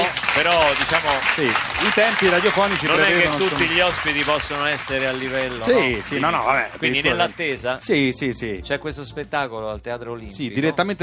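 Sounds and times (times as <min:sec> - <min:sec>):
applause: 0:00.0 - 0:07.8
speech: 0:00.4 - 0:11.0.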